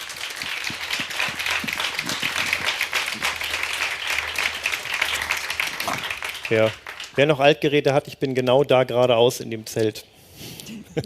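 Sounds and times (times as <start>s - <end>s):
audience applause: 0.0s - 7.5s
speech: 6.5s - 10.1s.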